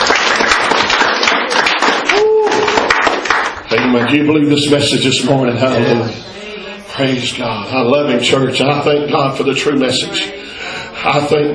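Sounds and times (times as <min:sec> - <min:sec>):
audience hand clapping: 0:00.0 - 0:04.6
speech: 0:03.7 - 0:06.4, 0:07.0 - 0:11.5.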